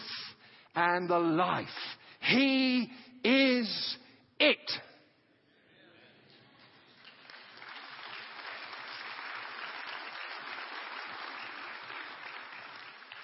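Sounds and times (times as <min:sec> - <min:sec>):
speech: 0:00.8 - 0:04.9
audience applause: 0:06.9 - 0:13.2.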